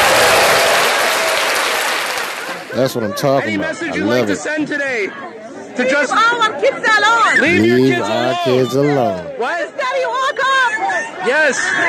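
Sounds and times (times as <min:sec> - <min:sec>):
crowd applause: 0:00.0 - 0:02.9
speech: 0:02.8 - 0:11.8.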